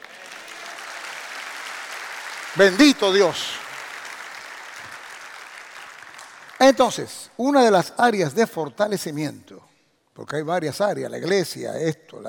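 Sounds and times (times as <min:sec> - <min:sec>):
audience applauding: 0:00.0 - 0:07.1
speech: 0:02.6 - 0:03.6, 0:06.7 - 0:12.2.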